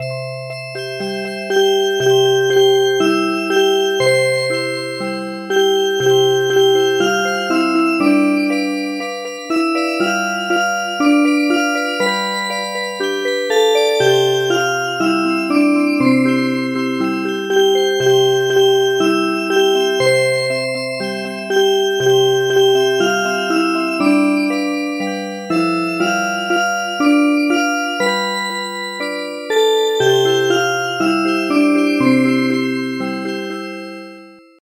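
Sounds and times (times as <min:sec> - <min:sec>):
music box: 0:00.0 - 0:34.2.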